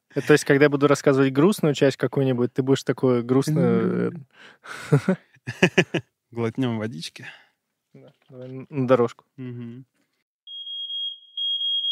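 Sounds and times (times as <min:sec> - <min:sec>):
speech: 0:00.2 - 0:09.9
fire alarm voice announcement: 0:03.5 - 0:04.2
laughter: 0:04.7 - 0:06.0
fire alarm beeping: 0:10.5 - 0:11.8.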